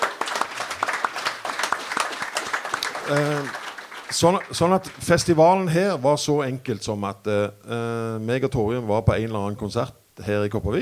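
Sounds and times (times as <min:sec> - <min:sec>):
scattered hand claps from a modest group: 0:00.0 - 0:05.2
speech: 0:03.1 - 0:10.8.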